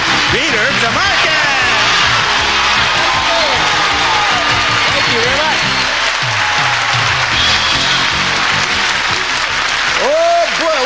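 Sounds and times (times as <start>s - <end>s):
studio audience cheering and applauding: 0.0s - 10.8s
speech: 0.3s - 1.2s.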